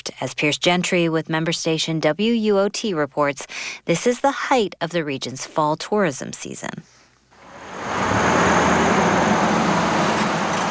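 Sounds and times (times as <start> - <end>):
speech: 0.2 - 7.0
stream of cars on the Cades Cove scenic drive, Great Smoky Mountains National Park: 7.4 - 10.7.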